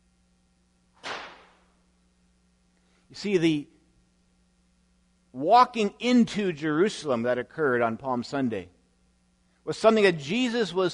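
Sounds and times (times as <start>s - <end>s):
whip crack sound effect: 1.0s - 1.7s
speech: 3.1s - 3.7s, 5.4s - 8.8s, 9.6s - 10.9s.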